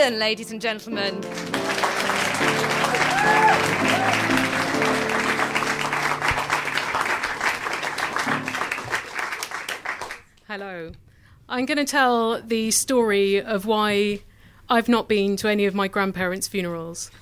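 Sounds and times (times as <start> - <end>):
speech: 0.0 - 1.9, 10.5 - 17.1
sustained applause from a large audience: 1.2 - 10.3.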